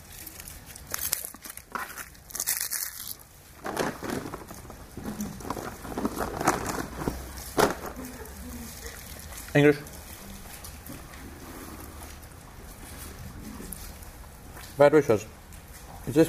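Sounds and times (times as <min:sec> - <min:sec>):
chocolate wrapper crinkling as it is unwrapped: 0:00.0 - 0:11.1
speech: 0:09.6 - 0:09.9, 0:14.8 - 0:15.4, 0:16.1 - 0:16.2.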